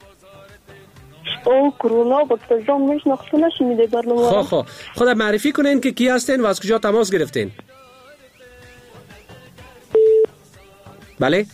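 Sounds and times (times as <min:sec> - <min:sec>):
speech: 0:01.4 - 0:07.7, 0:11.2 - 0:11.5
telephone line tone after a caller's call is cut off: 0:10.0 - 0:10.3.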